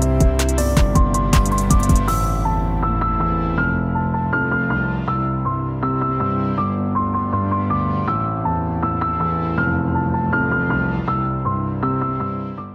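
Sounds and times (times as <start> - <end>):
instrumental piano remix: 0.0 - 12.7.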